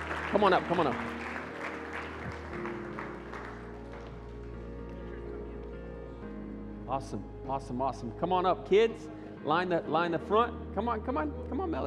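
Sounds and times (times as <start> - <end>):
audience applause: 0.0 - 5.6
speech: 0.3 - 1.2, 6.9 - 11.8.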